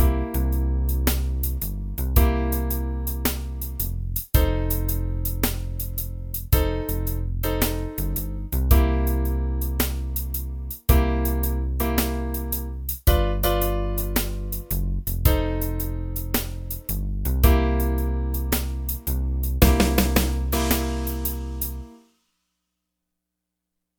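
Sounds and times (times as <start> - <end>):
blues music: 0.0 - 22.0.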